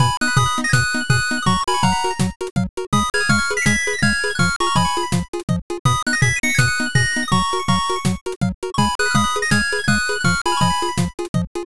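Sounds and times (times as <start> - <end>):
bright background music: 0.0 - 11.6.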